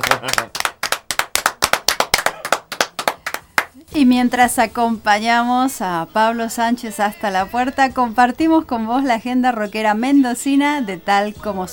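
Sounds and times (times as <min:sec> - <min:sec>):
live applause in the studio: 0:00.0 - 0:03.8
speech: 0:04.0 - 0:11.7.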